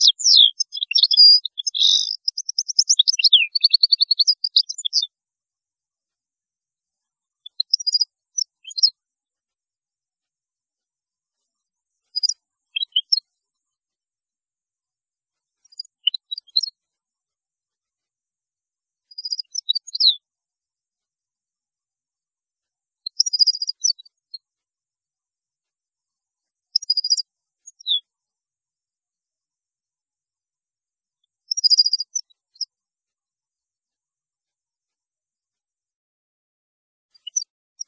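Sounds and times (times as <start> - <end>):
European goldfinch twittering song: 0.0 - 5.1, 7.4 - 8.9, 12.1 - 13.3, 15.6 - 16.7, 19.1 - 20.2, 23.1 - 24.2, 26.7 - 28.0, 31.5 - 32.7, 37.2 - 37.8.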